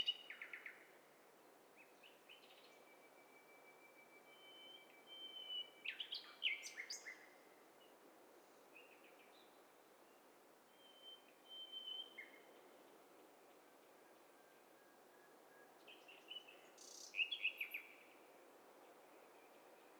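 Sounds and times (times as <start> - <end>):
thin level bird whistle: 2.3 - 7.4, 10.7 - 12.5, 14.4 - 18.1.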